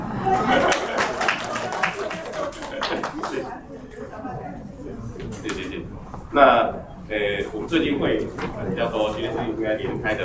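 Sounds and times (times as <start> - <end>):
laughter: 0.0 - 4.6
murmuring voices: 0.0 - 10.2
room full of people clapping: 0.2 - 3.7
speech: 7.6 - 10.2.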